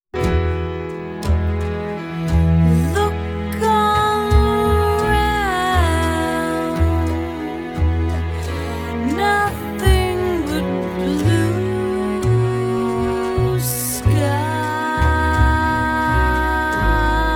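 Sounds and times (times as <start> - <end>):
jazz music: 0.1 - 17.3.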